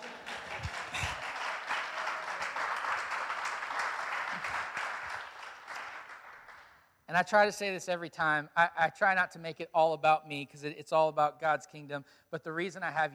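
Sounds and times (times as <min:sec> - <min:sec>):
audience clapping: 0:00.0 - 0:06.9
speech: 0:07.1 - 0:13.1.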